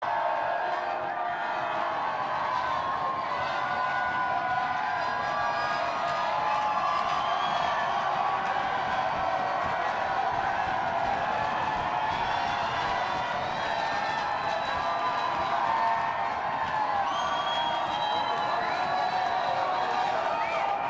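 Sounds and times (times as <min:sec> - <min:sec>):
crowd banter: 0:00.0 - 0:20.8.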